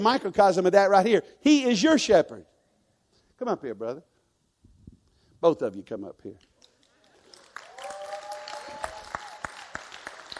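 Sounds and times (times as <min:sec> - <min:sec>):
speech: 0:00.0 - 0:02.5, 0:03.4 - 0:04.1, 0:05.4 - 0:06.5
audience applause: 0:07.0 - 0:10.3.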